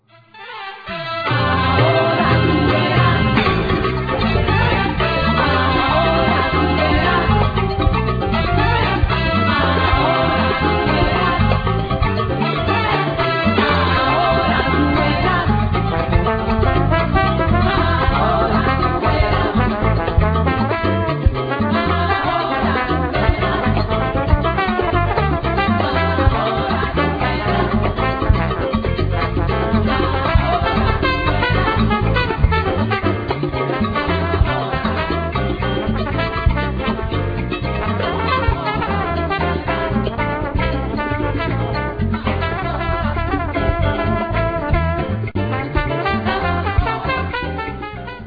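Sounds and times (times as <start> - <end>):
salsa music: 0.0 - 48.2.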